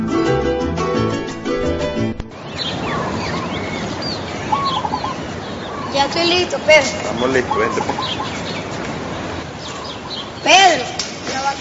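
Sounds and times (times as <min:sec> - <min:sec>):
melodic music: 0:00.0 - 0:02.4
steady outdoor hum: 0:00.0 - 0:11.6
morning birdsong on a lowland ranch: 0:02.0 - 0:11.6
speech: 0:06.0 - 0:08.4, 0:10.4 - 0:11.6.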